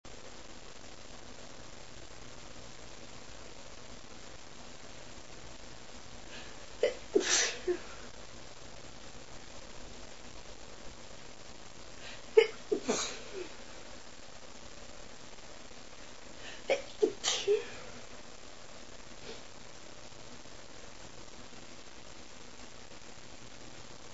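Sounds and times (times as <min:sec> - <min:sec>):
woman laughing from tickling: 0:06.8 - 0:08.0, 0:12.3 - 0:13.6, 0:16.7 - 0:17.9.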